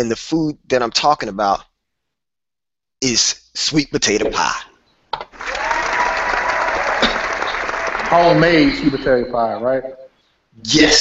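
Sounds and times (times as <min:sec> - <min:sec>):
speech: 0:00.0 - 0:01.7, 0:03.0 - 0:05.3, 0:08.1 - 0:10.0, 0:10.6 - 0:10.9
studio audience applauding and cheering: 0:05.3 - 0:08.8.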